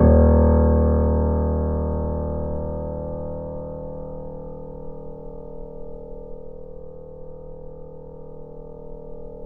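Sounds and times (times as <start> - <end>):
grand piano note D sharp zero: 0.0 - 4.8.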